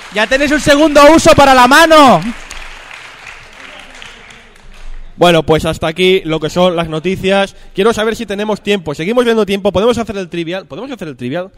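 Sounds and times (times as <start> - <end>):
audience applause: 0.0 - 5.0
speech: 0.1 - 2.4, 5.2 - 11.5.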